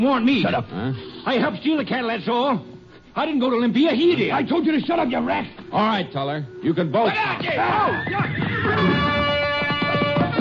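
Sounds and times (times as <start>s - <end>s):
speech: 0.0s - 9.1s
frightened horse neighing: 7.8s - 9.6s.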